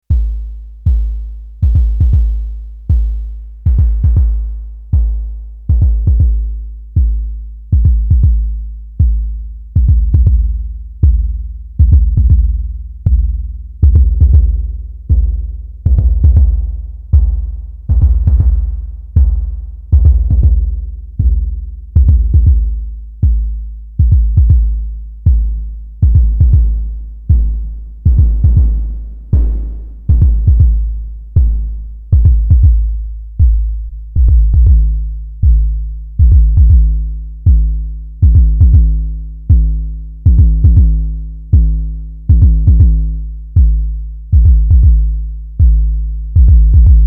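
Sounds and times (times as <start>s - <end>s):
Dreadbox Drips VCO bass drum with VCF: 0.0s - 47.0s
VCO2 noise: 26.1s - 36.8s.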